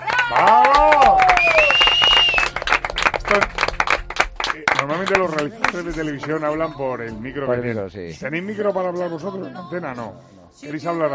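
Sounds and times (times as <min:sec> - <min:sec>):
audience voices cheering: 0:00.0 - 0:02.5
audience applause for the directors of a live television show: 0:00.0 - 0:06.4
speech: 0:00.3 - 0:00.7, 0:03.3 - 0:03.6, 0:04.8 - 0:11.1
high sustained whistle-like tone: 0:01.2 - 0:02.5.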